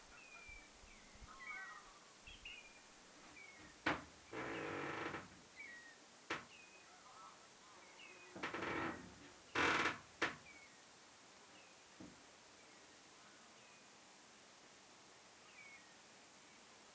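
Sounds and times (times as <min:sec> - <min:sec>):
eastern common redshank calling: 0:00.0 - 0:02.8
floorboards creaking in a tower: 0:03.6 - 0:05.4, 0:08.4 - 0:10.4.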